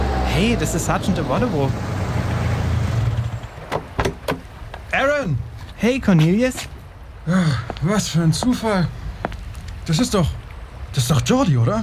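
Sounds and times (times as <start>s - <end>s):
car arriving along a roadside: 0.0s - 11.1s
speech: 0.4s - 2.0s, 4.9s - 9.0s, 9.9s - 11.8s
sharp knocks: 3.5s - 4.5s.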